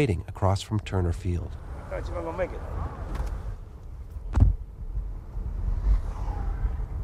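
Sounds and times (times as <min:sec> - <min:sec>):
speech: 0:00.0 - 0:03.0
car driving through darkened city streets in Atlanta: 0:00.7 - 0:07.0
wind noise: 0:01.5 - 0:07.0
brief thump: 0:04.3 - 0:04.6.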